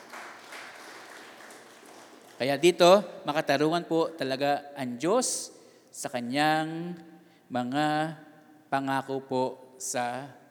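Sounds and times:
church congregation applause: 0:00.0 - 0:02.5
speech: 0:02.4 - 0:10.4.

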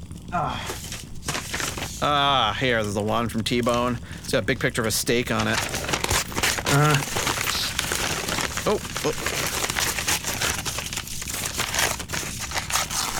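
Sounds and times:
speech: 0:00.3 - 0:00.8, 0:02.0 - 0:05.8, 0:06.7 - 0:07.2, 0:08.6 - 0:09.6
crinkling and rustling of cardboard and packing tape on a Christmas gift box: 0:00.5 - 0:13.1
packing tape tearing: 0:00.7 - 0:02.1, 0:05.3 - 0:13.1.

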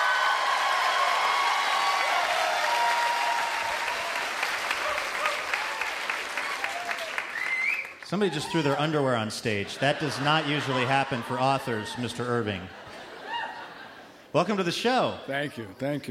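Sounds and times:
live show audience clapping to welcome an author: 0:00.0 - 0:09.2
speech: 0:08.1 - 0:12.8, 0:14.3 - 0:16.0
laughter: 0:09.4 - 0:14.3.

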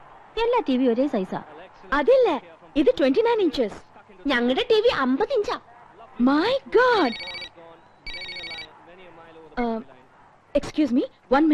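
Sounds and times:
speech: 0:00.4 - 0:07.4, 0:10.6 - 0:11.5
telephone ringing: 0:06.8 - 0:08.7.

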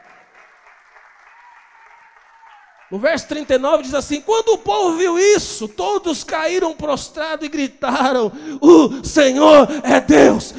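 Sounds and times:
church congregation applauding: 0:00.0 - 0:04.3
speech: 0:02.9 - 0:10.5.

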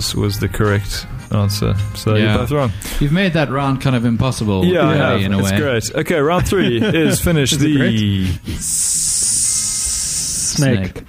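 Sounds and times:
speech: 0:00.0 - 0:09.3, 0:10.5 - 0:11.0
laughter: 0:04.6 - 0:08.8
person hissing like a snake: 0:08.4 - 0:10.7.

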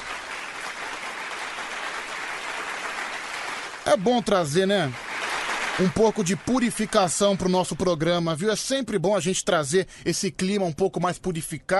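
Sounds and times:
audience applause: 0:00.0 - 0:07.8
speech: 0:03.9 - 0:05.0, 0:05.8 - 0:11.7.

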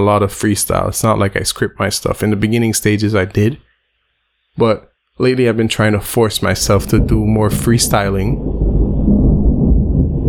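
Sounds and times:
speech: 0:00.0 - 0:03.7, 0:04.6 - 0:08.6
thunder rumbling: 0:06.4 - 0:10.2.

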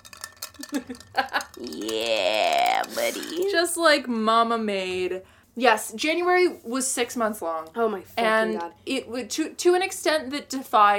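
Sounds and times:
ice clinking in a glass: 0:00.0 - 0:02.2
speech: 0:00.7 - 0:10.9.

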